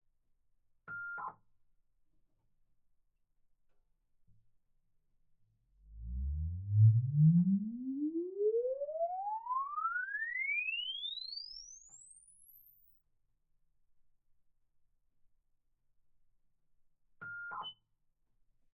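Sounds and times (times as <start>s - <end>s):
impulse response in Patria 6x6 passenger compartment interior: 5.7s - 12.9s.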